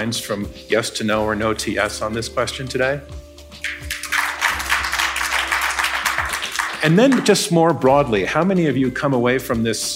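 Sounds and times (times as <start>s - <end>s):
speech: 0.0s - 3.8s, 6.8s - 9.9s
audience applause: 3.8s - 7.3s.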